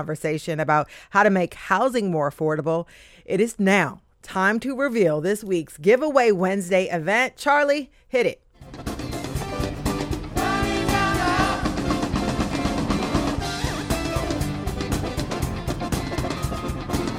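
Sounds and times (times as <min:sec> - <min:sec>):
speech: 0:00.0 - 0:08.9
rock music from a tribute band: 0:08.6 - 0:17.1.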